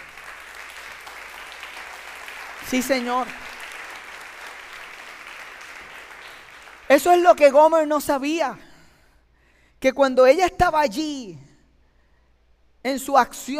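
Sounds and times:
audience applause: 0.0 - 7.1
speech: 2.6 - 3.4, 6.9 - 8.6, 9.8 - 11.4, 12.8 - 13.5.

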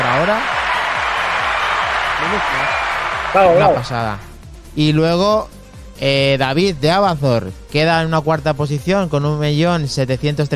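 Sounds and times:
applause: 0.0 - 4.0
speech: 0.3 - 0.6, 2.2 - 10.5.

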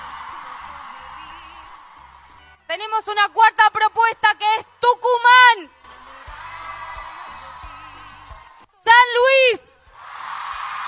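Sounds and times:
crowd clapping and cheering for a vote: 0.0 - 2.6, 5.8 - 8.7, 9.9 - 10.8
speech: 2.7 - 5.8, 9.0 - 9.7.

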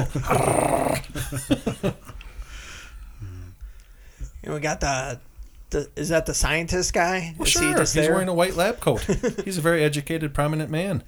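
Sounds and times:
speech: 0.0 - 0.7, 1.3 - 2.0, 4.5 - 11.0
dog Scraps growling in the film Megaforce: 0.0 - 1.3
laughter: 0.0 - 3.4, 7.4 - 10.0.

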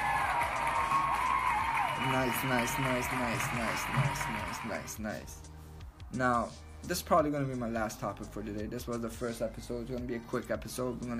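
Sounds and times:
audience clapping and cheering: 0.0 - 5.0
speech: 2.0 - 5.5, 6.1 - 11.1.

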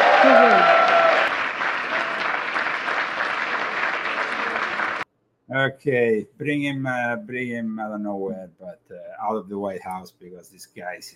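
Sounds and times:
loud sustained applause from a sizable crowd: 0.0 - 5.0
speech: 5.6 - 11.1.

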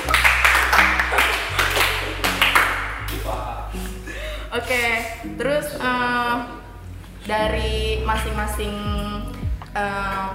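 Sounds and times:
group clapping hands: 0.0 - 3.9
speech: 4.6 - 6.6, 7.2 - 10.3.

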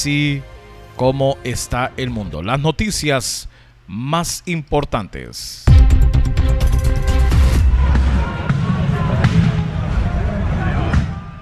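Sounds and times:
speech: 0.0 - 6.6
street protest clashes with police at night in central Barcelona: 7.6 - 11.4.

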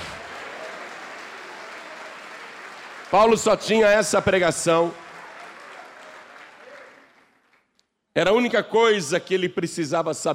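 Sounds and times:
audience applause: 0.0 - 7.6
speech: 3.1 - 5.0, 8.2 - 10.3.

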